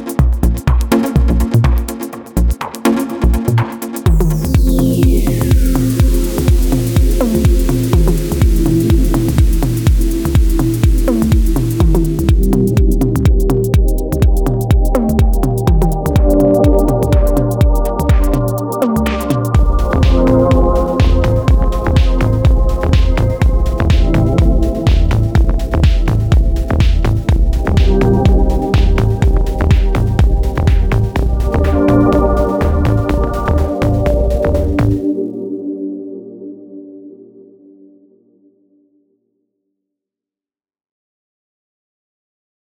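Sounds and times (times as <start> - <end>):
deep tech house music: 0.0 - 35.4.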